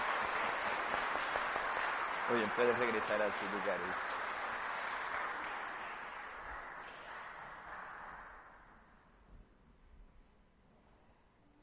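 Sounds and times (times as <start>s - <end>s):
audience applauding: 0.0s - 8.7s
speech: 2.3s - 4.1s.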